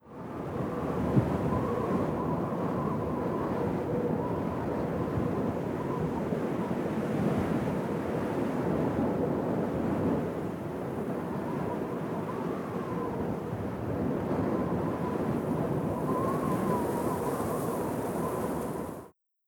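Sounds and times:
wind: 0.0 - 19.1.

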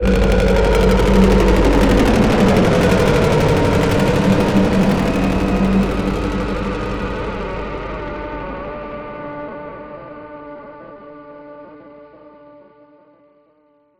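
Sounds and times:
fighter helicopter starting: 0.0 - 10.2.

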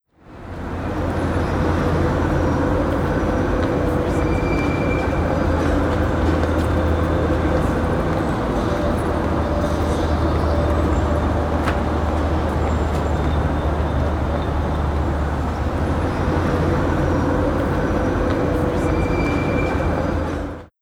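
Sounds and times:
city traffic in New York City: 0.1 - 20.7.

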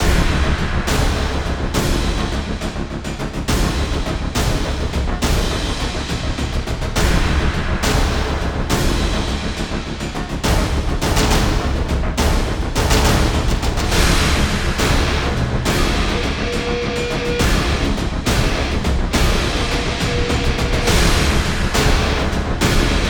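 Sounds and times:
low bass loop: 0.0 - 23.0.

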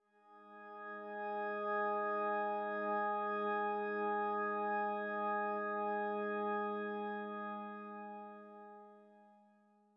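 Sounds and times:
church organ: 0.7 - 9.1.

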